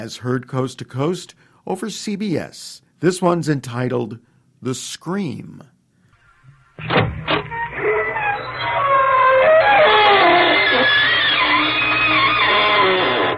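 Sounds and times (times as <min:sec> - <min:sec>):
speech: 0:00.0 - 0:05.7
creaking door: 0:06.2 - 0:13.3.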